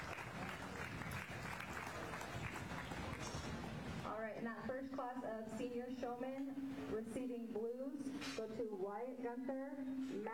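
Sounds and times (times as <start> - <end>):
crowd applause at livestock show: 0.0 - 3.9
speech: 4.2 - 10.3.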